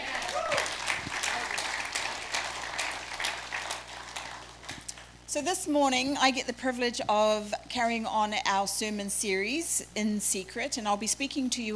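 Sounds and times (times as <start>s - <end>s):
round of applause for a worship team: 0.0s - 5.0s
speech: 5.3s - 11.7s.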